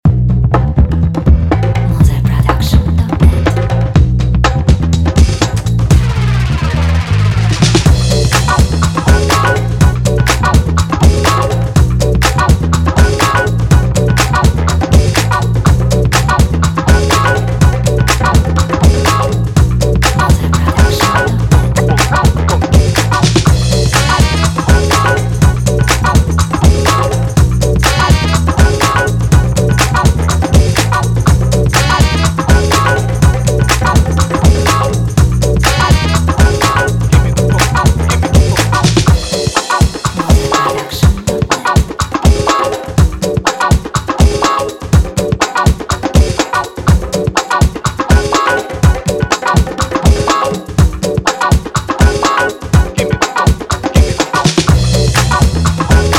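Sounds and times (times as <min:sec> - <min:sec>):
catchy funky beat: 0:00.1 - 0:56.1.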